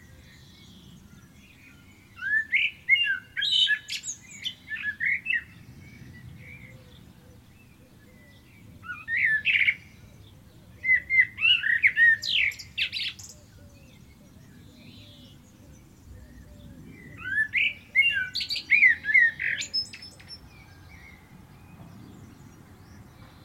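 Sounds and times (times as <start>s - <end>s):
common blackbird singing: 0.0s - 23.4s.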